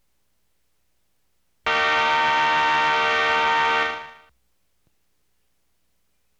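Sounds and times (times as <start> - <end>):
alarm: 1.7 - 4.3.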